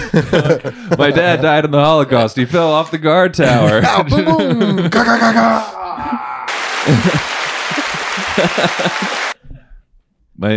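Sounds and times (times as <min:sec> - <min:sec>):
laughter: 0:00.0 - 0:01.7, 0:03.5 - 0:05.7, 0:06.5 - 0:09.4
speech: 0:00.1 - 0:06.1, 0:06.9 - 0:07.3, 0:08.4 - 0:09.3, 0:10.4 - 0:10.5
applause: 0:06.5 - 0:09.4.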